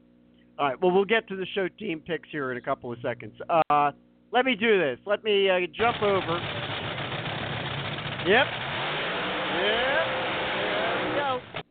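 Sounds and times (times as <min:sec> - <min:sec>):
speech: 0:00.6 - 0:06.6, 0:08.2 - 0:08.6
NHRA drag racing cars roaring and revving: 0:05.8 - 0:11.6.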